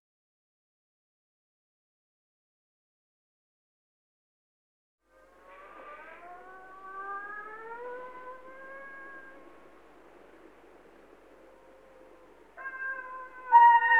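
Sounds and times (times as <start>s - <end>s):
dogs howling together: 5.6s - 9.7s, 12.6s - 13.9s.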